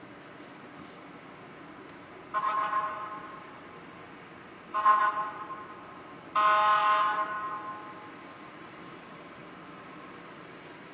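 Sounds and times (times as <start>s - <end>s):
fire truck horn passing: 2.3s - 3.5s, 4.7s - 8.1s.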